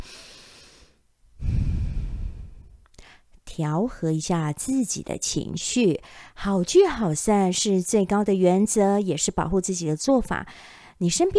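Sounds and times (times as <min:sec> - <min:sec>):
deep breath: 0:00.0 - 0:03.3, 0:06.0 - 0:06.4, 0:10.5 - 0:11.0
speech: 0:03.6 - 0:11.3.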